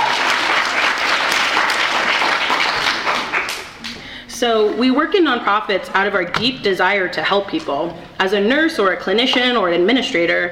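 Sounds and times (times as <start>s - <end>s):
sustained crowd applause: 0.0s - 3.9s
speech: 4.4s - 10.5s.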